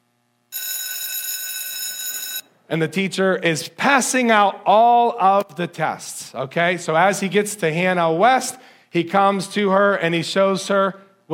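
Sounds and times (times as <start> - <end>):
loud electric school bell ringing for class: 0.6 - 2.5
speech: 2.7 - 11.3.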